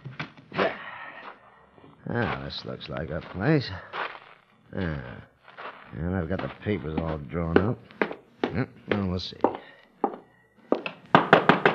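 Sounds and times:
speech: 2.1 - 4.0, 4.7 - 5.3, 5.9 - 9.5
knocking on a door: 11.1 - 11.7.

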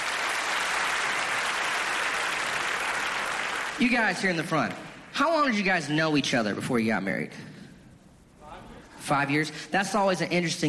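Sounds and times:
audience clapping: 0.0 - 5.1
speech: 3.8 - 7.5, 9.1 - 10.6.

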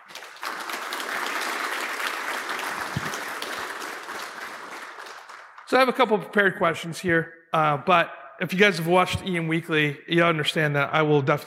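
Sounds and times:
audience applause: 0.0 - 5.7
speech: 5.7 - 11.4.

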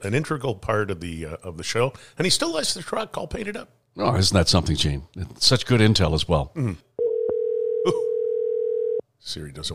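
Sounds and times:
speech: 0.0 - 6.9, 7.8 - 8.1, 9.2 - 9.7
phone dial tone: 7.0 - 9.0.

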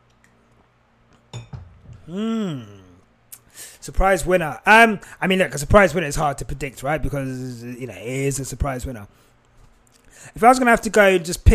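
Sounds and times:
glass clinking while drinking water: 1.3 - 1.8
person sighing ahh: 2.0 - 3.8
speech: 2.1 - 2.8, 3.6 - 9.3, 10.2 - 11.5.

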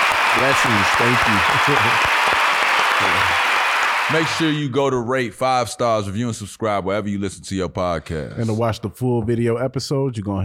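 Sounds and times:
applause: 0.0 - 4.6
speech: 0.4 - 2.4, 3.0 - 3.5, 4.1 - 10.4.

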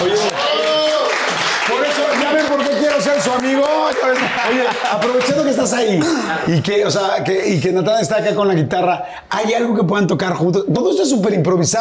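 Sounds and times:
people whooping and cheering: 0.0 - 2.1
crowd clapping: 0.0 - 6.1
speech: 3.4 - 11.7
laughter: 3.8 - 6.8.

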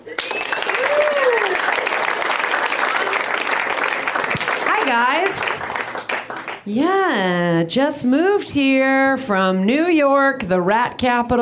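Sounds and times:
whoops and cheers: 0.0 - 2.0
crowd applause: 0.0 - 6.6
speech: 5.0 - 5.4, 6.6 - 11.3.

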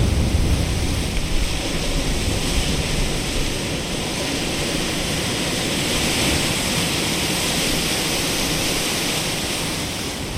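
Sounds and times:
ocean surging against sea wall rocks: 0.0 - 10.3.

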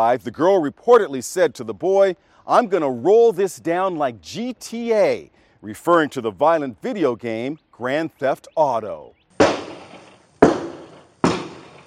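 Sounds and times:
speech: 0.0 - 9.2
shotgun blasts fired through a car's rear window: 9.4 - 11.8.

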